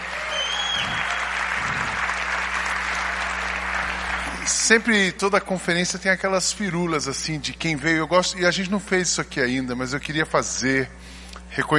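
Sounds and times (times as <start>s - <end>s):
audience applause for musicians: 0.0s - 4.8s
faint low hum: 0.0s - 11.7s
speech: 4.7s - 11.7s.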